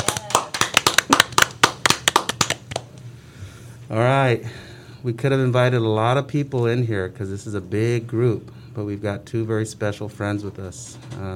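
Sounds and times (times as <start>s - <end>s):
group applause: 0.0s - 2.9s
speech: 3.9s - 11.3s.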